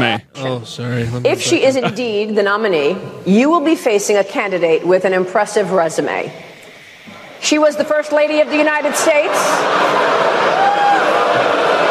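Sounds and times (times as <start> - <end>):
speech: 0.2 - 6.5, 7.4 - 10.3
laughter: 1.5 - 2.4, 8.1 - 11.8
crowd booing: 8.3 - 11.8.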